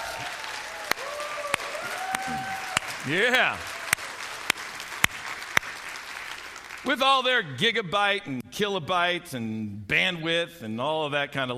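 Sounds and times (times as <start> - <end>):
audience applause: 0.0 - 7.0
speech: 3.1 - 3.7, 6.8 - 11.5.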